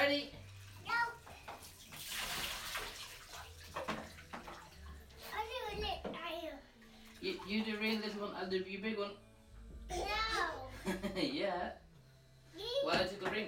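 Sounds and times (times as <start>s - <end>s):
water splashing in a bathtub: 0.0s - 8.5s
speech: 7.5s - 9.3s, 10.8s - 11.8s, 12.6s - 13.4s.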